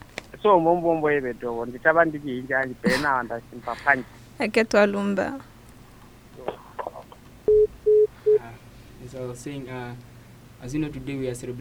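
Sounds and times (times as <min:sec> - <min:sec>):
speech: 0:00.4 - 0:05.5, 0:09.1 - 0:11.5
telephone signal beeps announcing an incoming caller on a radio show: 0:07.5 - 0:08.4.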